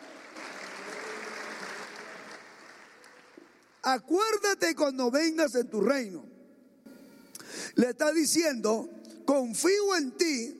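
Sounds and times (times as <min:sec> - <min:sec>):
applause: 0:00.0 - 0:03.9
speech: 0:03.8 - 0:06.3, 0:07.8 - 0:10.5.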